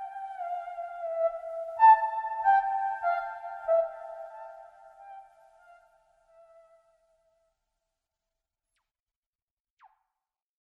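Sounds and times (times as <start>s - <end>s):
theremin: 0.0s - 6.8s.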